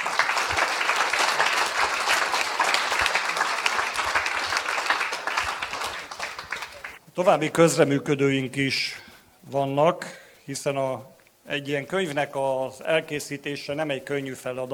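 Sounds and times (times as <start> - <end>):
audience applause: 0.0 - 7.0
speech: 7.2 - 14.7.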